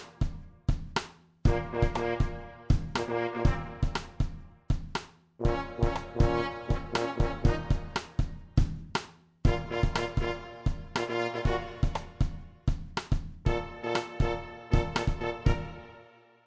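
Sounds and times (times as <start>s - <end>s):
drum kit: 0.0s - 16.0s
trombone: 1.5s - 4.5s, 5.4s - 8.4s, 9.5s - 12.4s, 13.4s - 16.2s
trumpet: 1.5s - 4.6s, 5.4s - 8.6s, 9.5s - 12.6s, 13.4s - 16.4s.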